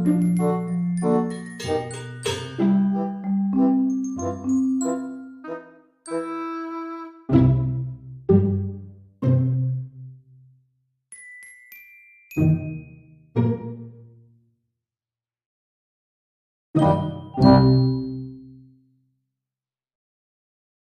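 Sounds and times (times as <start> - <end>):
game background music: 0.0 - 6.5, 7.3 - 10.2, 13.4 - 14.2, 16.8 - 18.3.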